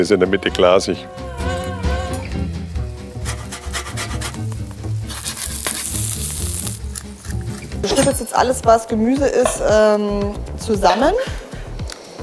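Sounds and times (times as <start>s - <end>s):
speech: 0.0s - 1.5s, 7.8s - 11.4s
fish sizzling in a pan of oil and butter: 2.8s - 7.6s.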